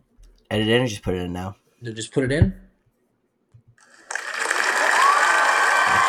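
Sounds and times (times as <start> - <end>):
speech: 0.5 - 2.6
applause sound effect edited in: 3.8 - 6.0.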